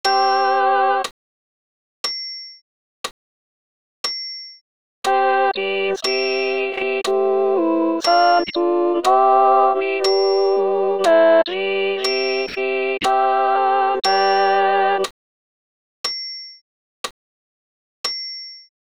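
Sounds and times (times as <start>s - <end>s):
alto voice with accompaniment: 0.1s - 1.0s, 5.1s - 15.1s.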